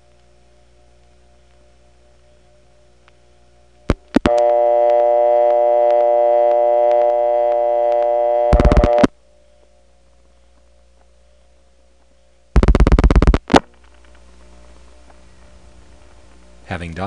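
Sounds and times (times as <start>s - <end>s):
PBX ring and reorder tone via Drake incoming selector into the DeKalb County PBX: 3.9s - 9.1s, 12.6s - 13.6s
rapid dial-pulse clicking: 3.9s - 9.1s.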